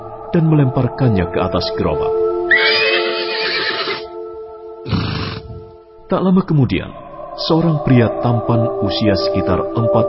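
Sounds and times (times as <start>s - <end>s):
speech: 0.3s - 2.7s, 6.1s - 10.0s
horse neighing by a cart: 2.5s - 4.1s, 4.8s - 5.7s.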